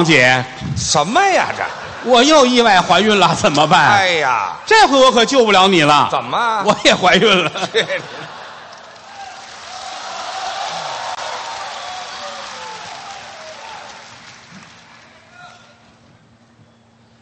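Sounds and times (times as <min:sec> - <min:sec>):
speech: 0:00.0 - 0:08.3
laughter: 0:01.2 - 0:04.0, 0:06.6 - 0:09.6
sparse scattered applause: 0:08.4 - 0:16.0.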